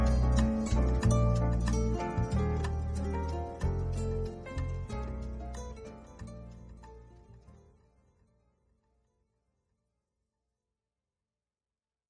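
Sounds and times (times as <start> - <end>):
bossa nova version of a piece: 0.0 - 7.8.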